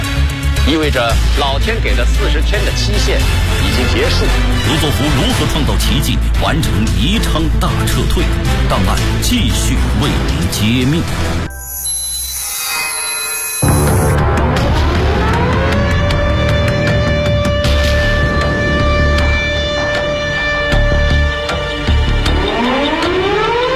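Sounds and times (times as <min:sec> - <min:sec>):
speech: 0:00.7 - 0:11.6
wartime air-raid siren over a city: 0:12.3 - 0:23.7.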